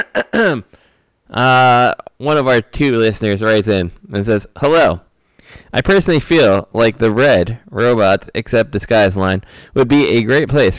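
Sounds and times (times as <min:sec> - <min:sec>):
throat clearing: 0:00.0 - 0:00.8
speech: 0:00.0 - 0:10.7.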